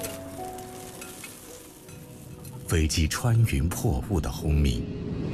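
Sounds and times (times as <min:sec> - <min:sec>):
food sizzling on an iron griddle: 0:00.0 - 0:02.5
speech: 0:02.7 - 0:05.2.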